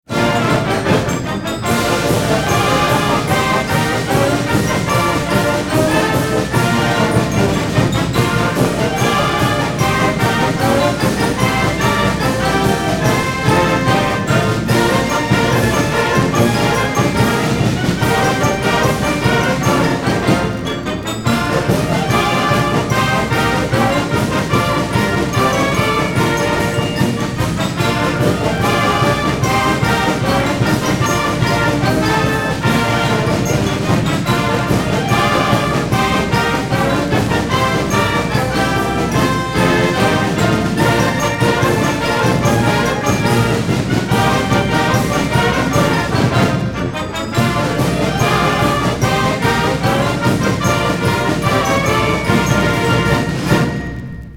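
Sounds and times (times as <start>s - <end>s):
song: 0.0s - 54.3s.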